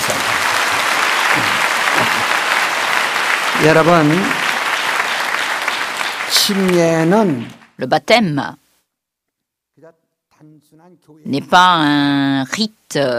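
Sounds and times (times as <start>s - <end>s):
audience applauding: 0.0s - 7.8s
speech: 3.6s - 4.4s, 6.4s - 8.6s, 9.8s - 13.1s.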